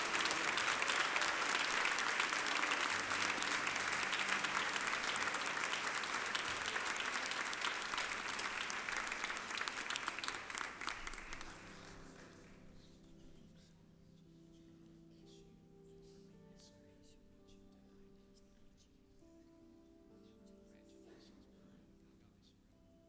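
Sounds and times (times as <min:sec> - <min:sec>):
crowd applause: 0:00.0 - 0:12.6.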